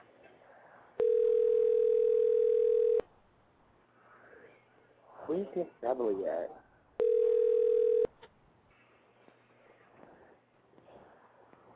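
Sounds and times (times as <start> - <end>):
telephone ringback tone: 1.0 - 3.0, 7.0 - 8.1
speech: 5.4 - 6.6.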